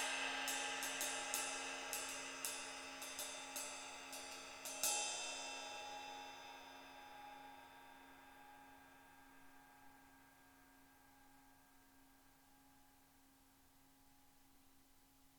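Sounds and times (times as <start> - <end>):
21-inch ride cymbal: 0.0 - 8.8.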